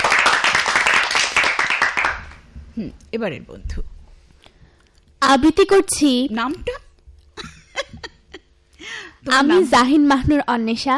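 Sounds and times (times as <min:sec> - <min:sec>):
audience clapping loudly after a song: 0:00.0 - 0:02.4
speech: 0:02.8 - 0:03.9, 0:05.3 - 0:06.8, 0:09.2 - 0:10.9.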